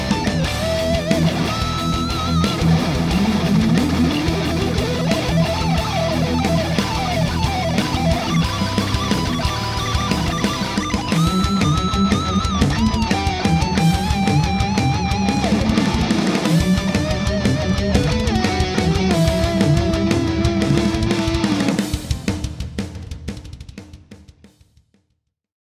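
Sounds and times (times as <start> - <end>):
metal guitar tone through multi-effects processor: 0.0 - 22.3.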